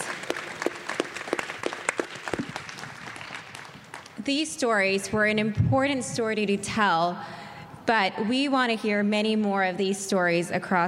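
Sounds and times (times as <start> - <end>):
audience applause: 0.0 - 4.2
speech: 4.2 - 10.8.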